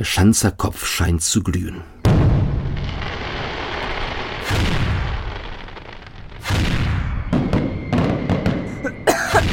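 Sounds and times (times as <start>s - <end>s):
speech: 0.0s - 2.0s
fireworks rockets exploding: 2.0s - 9.5s.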